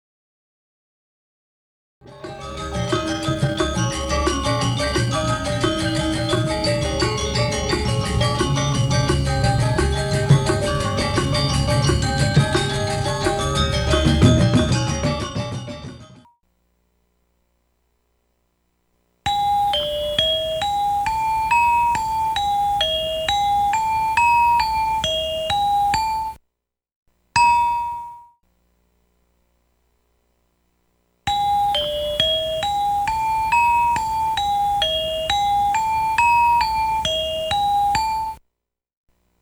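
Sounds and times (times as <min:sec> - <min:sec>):
gamelan orchestra: 0:02.1 - 0:15.8, 0:19.3 - 0:26.4, 0:31.3 - 0:38.4.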